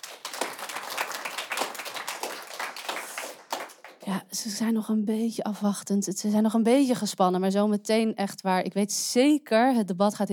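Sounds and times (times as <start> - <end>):
audience applause: 0.0 - 4.0
speech: 4.1 - 10.3.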